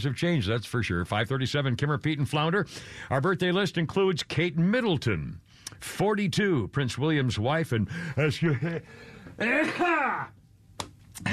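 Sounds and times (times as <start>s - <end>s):
speech: 0.0s - 10.4s, 11.2s - 11.3s
laughter: 8.0s - 10.2s
person sneezing: 9.4s - 10.4s, 11.2s - 11.3s.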